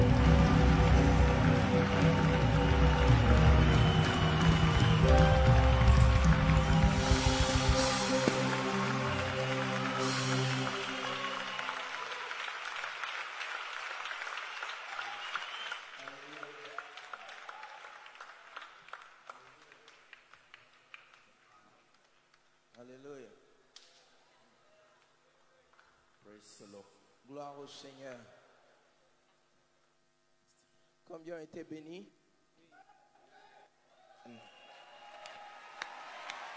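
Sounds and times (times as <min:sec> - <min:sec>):
congregation cheering: 0:00.0 - 0:18.7, 0:33.9 - 0:36.5
congregation applauding in a church service: 0:00.0 - 0:22.8, 0:34.6 - 0:36.5
speech: 0:26.5 - 0:28.4, 0:31.1 - 0:32.2, 0:34.2 - 0:34.5.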